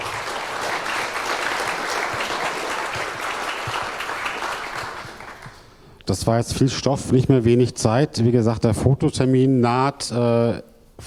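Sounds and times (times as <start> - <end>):
audience applause: 0.0 - 5.7
speech: 6.1 - 11.0.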